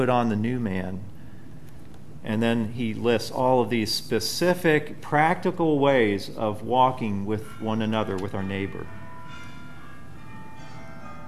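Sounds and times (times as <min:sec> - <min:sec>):
speech: 0:00.0 - 0:01.1, 0:02.2 - 0:09.0
closing bell ringing: 0:07.0 - 0:11.2.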